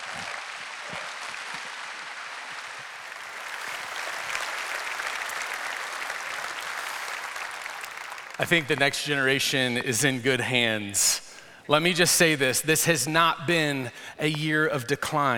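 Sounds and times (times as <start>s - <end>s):
audience applause: 0.0s - 9.2s
speech: 8.4s - 15.3s.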